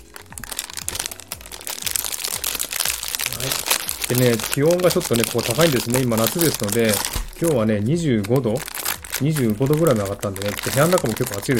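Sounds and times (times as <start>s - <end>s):
Tim Tam biscuit package plastic wrapping being pulled open: 0.0s - 11.5s
speech: 3.4s - 11.5s.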